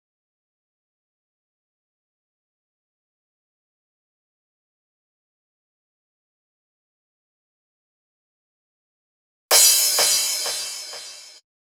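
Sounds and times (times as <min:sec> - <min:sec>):
drum loop: 0:09.5 - 0:11.4
wet crash cymbal: 0:09.5 - 0:11.4.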